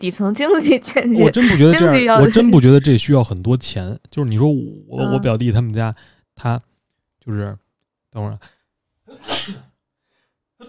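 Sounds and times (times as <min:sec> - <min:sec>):
speech: 0:00.0 - 0:09.7
sneeze: 0:09.1 - 0:09.8.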